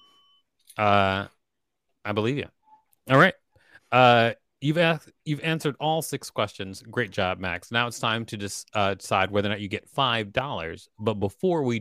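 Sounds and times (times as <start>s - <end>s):
bell ring: 0.0s - 0.4s
speech: 0.8s - 1.4s, 2.0s - 11.7s.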